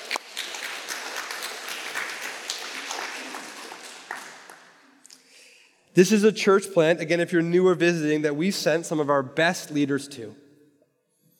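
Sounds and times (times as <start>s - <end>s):
audience clapping: 0.0s - 5.0s
speech: 6.0s - 10.4s.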